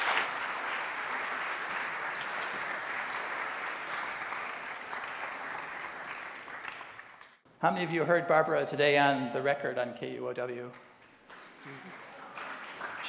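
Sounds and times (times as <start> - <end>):
audience applause welcoming two speakers to an onstage talk: 0.0 - 7.4, 11.3 - 13.0
speech: 7.6 - 10.9.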